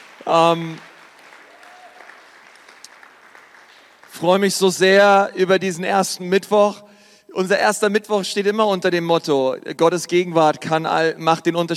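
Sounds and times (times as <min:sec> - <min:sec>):
audience applause: 0:00.0 - 0:04.8
speech: 0:00.3 - 0:00.9, 0:04.2 - 0:11.7.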